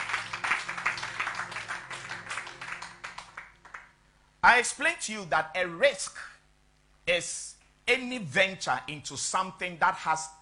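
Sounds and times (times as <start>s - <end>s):
audience clapping: 0.0s - 4.0s
speech: 4.4s - 6.3s, 7.1s - 10.4s.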